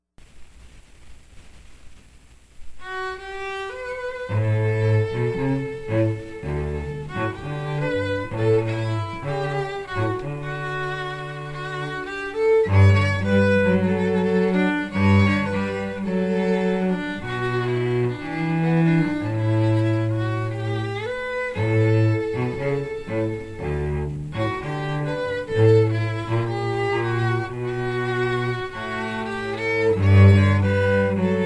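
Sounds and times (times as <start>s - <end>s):
strings: 2.8s - 31.4s.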